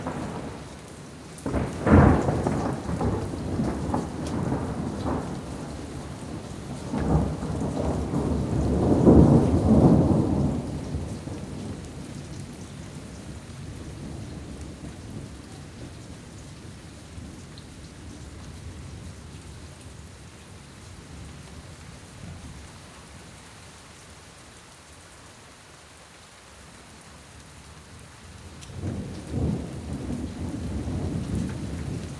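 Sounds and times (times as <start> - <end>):
thunderstorm: 0.0 - 19.5, 28.6 - 32.1.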